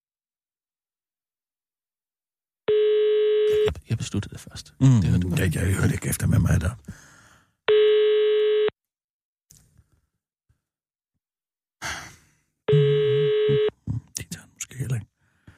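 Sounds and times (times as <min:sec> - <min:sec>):
unanswered phone ringback tone: 0:02.7 - 0:03.7, 0:07.7 - 0:08.7, 0:12.7 - 0:13.7
speech: 0:03.9 - 0:07.1
faint breathing: 0:06.8 - 0:07.6, 0:15.2 - 0:15.5.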